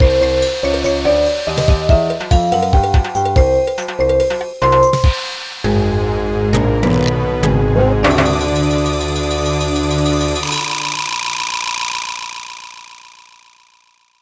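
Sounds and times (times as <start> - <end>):
boss victory music: 0.0 - 11.0.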